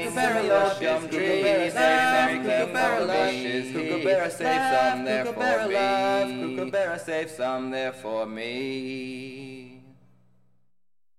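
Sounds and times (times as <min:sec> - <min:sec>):
voices singing a round: 0:00.0 - 0:07.6.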